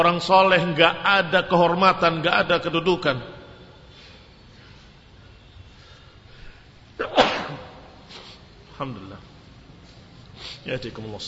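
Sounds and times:
speech: 0.0 - 3.3, 8.8 - 9.2, 10.6 - 11.2
sneeze: 7.0 - 8.2.

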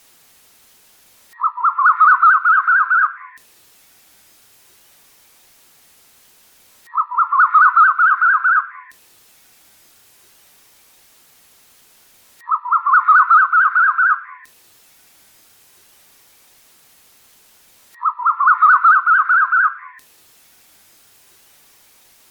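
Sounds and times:
bird chattering song: 1.4 - 3.4, 6.9 - 8.9, 12.4 - 14.5, 18.0 - 20.0.

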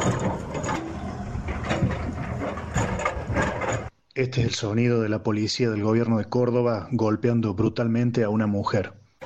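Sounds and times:
giant construction machine engine: 0.0 - 3.9
speech: 4.2 - 9.0.

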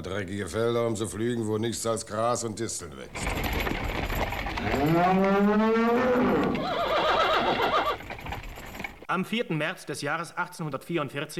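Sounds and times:
speech: 0.0 - 3.8, 4.6 - 6.9, 9.1 - 11.3
cattle lowing in a moving herd: 3.2 - 8.8
quavering, warbling animal cry: 4.6 - 8.0.

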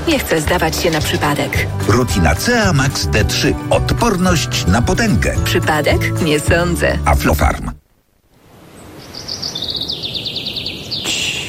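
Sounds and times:
speech: 0.1 - 7.8
songbirds chirping and singing: 8.8 - 11.4.

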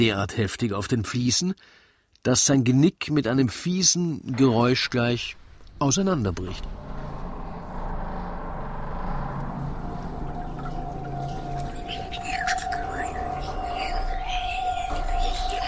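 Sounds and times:
speech: 0.0 - 6.8
dense rumbling noise: 4.3 - 15.6
swirling high-pitched sounds: 5.8 - 15.6
high whistling tone: 6.6 - 15.6.

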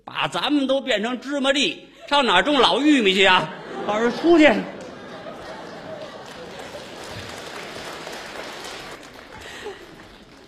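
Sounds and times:
speech: 0.2 - 4.8
laughter: 2.1 - 10.4
audience applause after comic crosstalk pieces: 3.8 - 10.4.

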